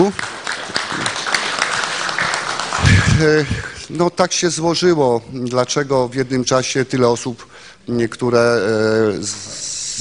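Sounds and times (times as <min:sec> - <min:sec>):
applause: 0:00.0 - 0:03.9
speech: 0:00.1 - 0:00.3, 0:03.2 - 0:09.8.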